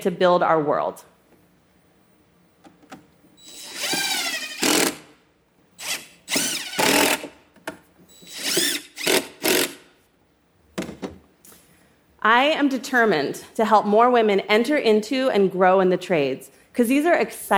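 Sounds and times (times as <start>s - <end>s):
speech: 0.0s - 1.1s, 12.2s - 17.5s
power drill revving: 3.4s - 5.1s, 5.8s - 7.3s, 8.3s - 9.8s.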